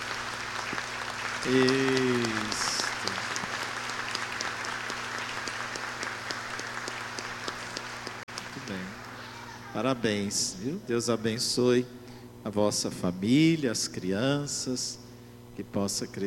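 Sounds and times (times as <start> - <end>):
audience applause: 0.0 - 10.0
speech: 1.4 - 2.7, 9.8 - 15.0, 15.6 - 16.2.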